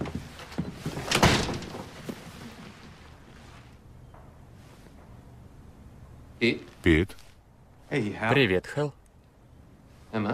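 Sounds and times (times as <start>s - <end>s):
door swinging open: 0.9s - 2.1s
speech: 6.4s - 7.2s, 7.9s - 9.0s, 10.1s - 10.3s.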